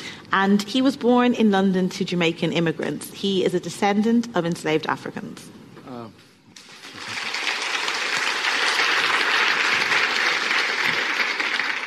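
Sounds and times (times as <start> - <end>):
speech: 0.3 - 5.6
audience applause: 6.6 - 11.8.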